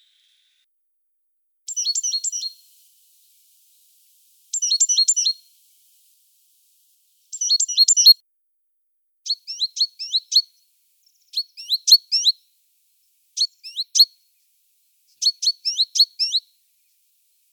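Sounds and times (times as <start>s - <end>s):
great tit calling: 1.7s - 2.7s, 4.5s - 5.4s, 7.3s - 8.2s, 9.3s - 10.5s, 11.3s - 12.3s, 13.4s - 14.1s, 15.2s - 16.5s.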